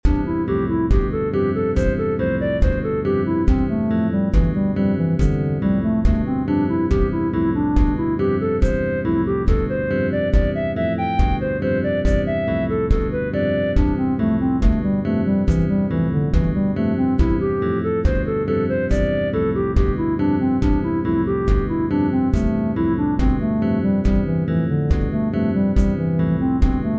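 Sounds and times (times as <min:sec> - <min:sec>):
music: 0:00.0 - 0:26.9.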